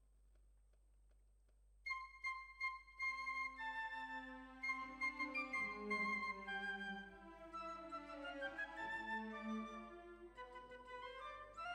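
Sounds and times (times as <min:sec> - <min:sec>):
violins: 0:03.4 - 0:11.7.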